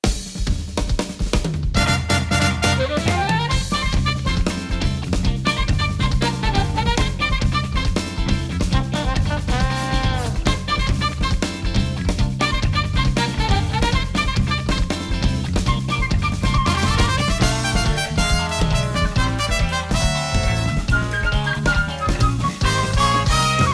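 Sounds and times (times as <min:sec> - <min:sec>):
samba arrangement: 0:00.0 - 0:23.7.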